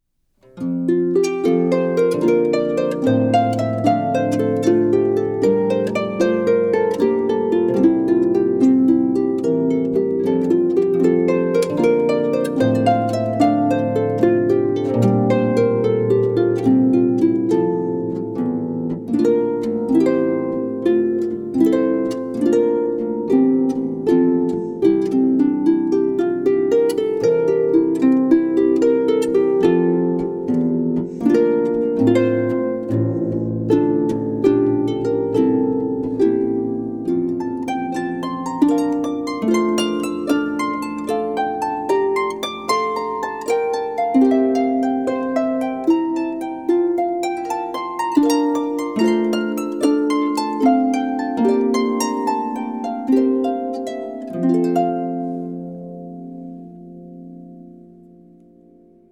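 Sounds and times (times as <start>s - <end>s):
harp: 0.0s - 59.1s.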